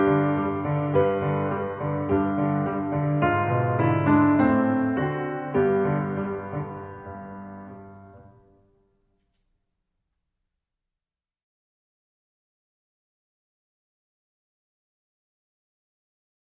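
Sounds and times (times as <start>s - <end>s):
piano accompaniment: 0.0s - 9.1s.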